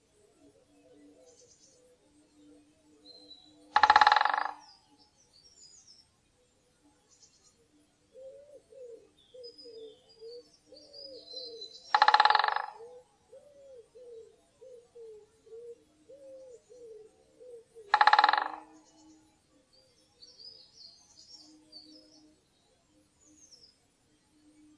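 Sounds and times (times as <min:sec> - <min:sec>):
great spotted woodpecker giving kik calls: 0:03.8 - 0:04.8, 0:11.0 - 0:19.2.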